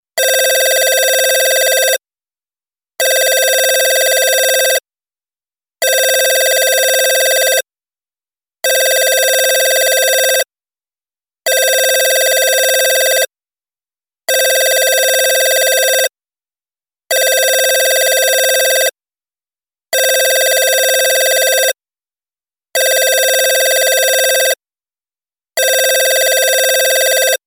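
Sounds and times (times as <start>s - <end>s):
old phone ringing: 0.2s - 2.0s, 3.0s - 4.8s, 5.9s - 7.6s, 8.7s - 10.5s, 11.5s - 13.3s, 14.3s - 16.1s, 17.1s - 18.9s, 20.0s - 21.8s, 22.8s - 24.6s, 25.6s - 27.4s.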